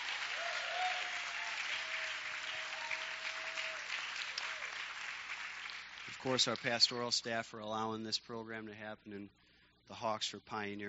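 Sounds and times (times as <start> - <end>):
audience applause: 0.0 - 6.8
speech: 6.1 - 10.8.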